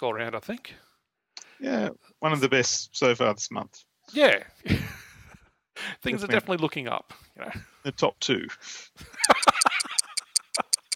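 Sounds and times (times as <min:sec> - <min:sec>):
speech: 0:00.0 - 0:00.9, 0:01.6 - 0:05.0, 0:05.8 - 0:09.5
laughter: 0:04.7 - 0:05.4, 0:09.0 - 0:10.9
doom clock ticking sound effect: 0:09.1 - 0:10.9.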